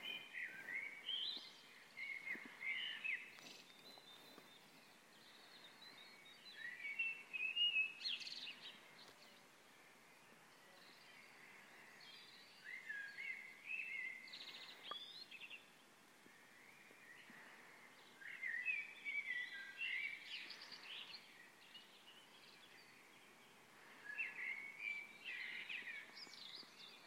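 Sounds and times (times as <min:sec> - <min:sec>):
dawn chorus on Angel Road Norwich: 0:00.0 - 0:27.0.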